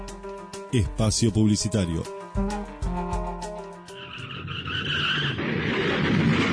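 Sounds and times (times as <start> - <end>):
speech: 0.7 - 2.7
car skidding: 3.9 - 6.5.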